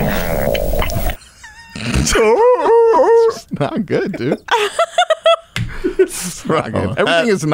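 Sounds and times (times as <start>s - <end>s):
stomach growling loudly: 0.0s - 1.2s, 1.8s - 2.3s
speech: 2.0s - 2.5s, 3.6s - 4.9s, 6.2s - 7.5s
laughter: 2.1s - 7.4s.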